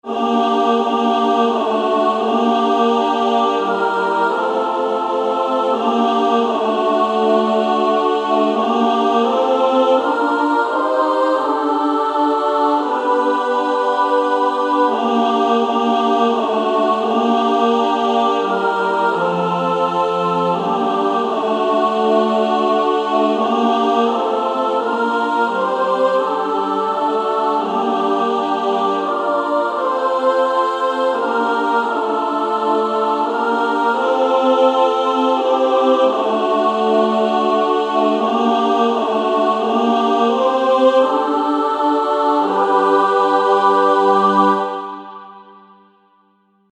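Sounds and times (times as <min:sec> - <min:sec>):
female choir singing: 0:00.0 - 0:45.9.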